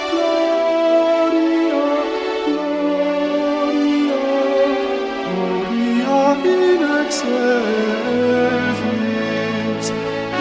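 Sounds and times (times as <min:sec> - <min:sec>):
alto voice singing a motet: 0:00.0 - 0:10.3.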